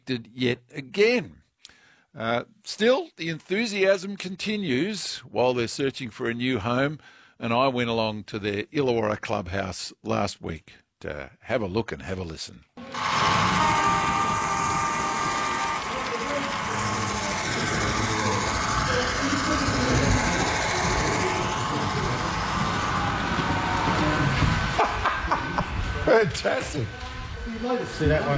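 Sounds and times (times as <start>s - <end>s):
speech: 0.1s - 1.4s, 2.1s - 13.5s, 26.1s - 27.0s, 27.6s - 28.3s
model train running on track: 12.8s - 25.1s
people murmuring and chuckling: 16.1s - 26.4s.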